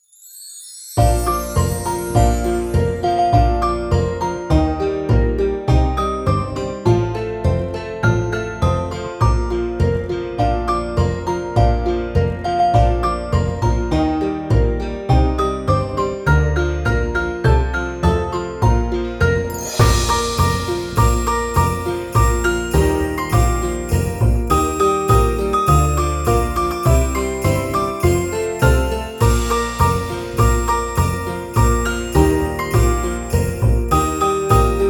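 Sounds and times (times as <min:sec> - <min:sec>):
Christmas song: 0:00.0 - 0:34.8.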